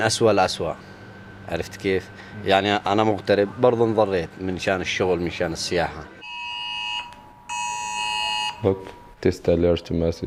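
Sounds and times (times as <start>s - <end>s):
speech: 0.0s - 0.9s, 1.5s - 6.2s, 8.6s - 10.2s
mobile phone emergency alert tone: 6.2s - 8.8s.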